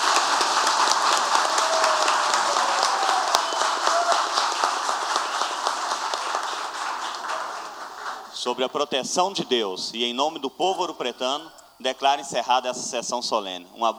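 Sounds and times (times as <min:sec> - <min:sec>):
audience applause: 0:00.0 - 0:08.8
speech: 0:08.4 - 0:13.9.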